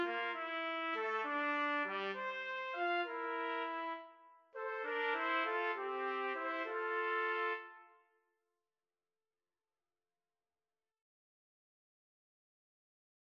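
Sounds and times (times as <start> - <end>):
trombone: 0.0 - 7.9
clarinet: 0.0 - 8.1
two trumpets: 0.0 - 8.1.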